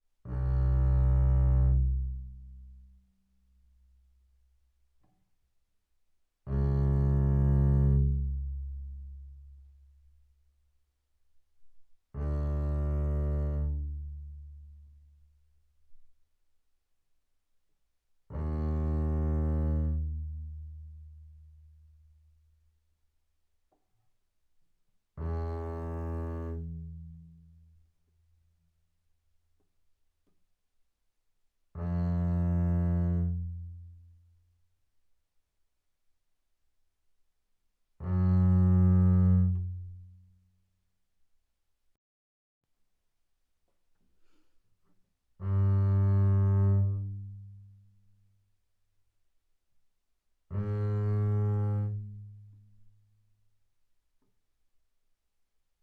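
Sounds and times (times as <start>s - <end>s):
double bass bowed arco fortissimo on A string: 0.3s - 2.9s, 6.5s - 10.0s, 12.1s - 15.0s, 18.3s - 21.9s, 25.2s - 27.8s, 31.7s - 34.2s, 38.0s - 40.3s, 45.4s - 47.9s, 50.5s - 52.7s.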